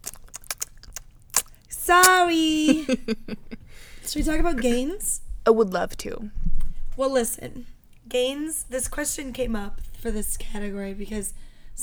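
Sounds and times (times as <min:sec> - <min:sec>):
person chewing starchy food such as rice or oats: 0:00.0 - 0:02.2
speech: 0:01.9 - 0:06.4, 0:07.0 - 0:11.8
laughter: 0:02.5 - 0:03.8.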